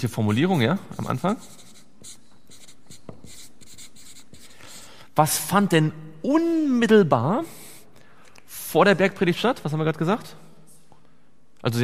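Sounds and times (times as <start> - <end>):
speech: 0.0 - 1.6, 5.2 - 7.6, 8.7 - 10.4, 11.6 - 11.8
pen scratching as a phrase is written by hand: 0.1 - 4.8.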